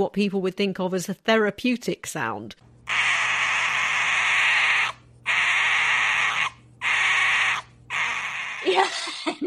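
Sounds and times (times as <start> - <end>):
speech: 0.0 - 2.7, 8.8 - 9.4
pet foxes making sounds: 2.9 - 8.9.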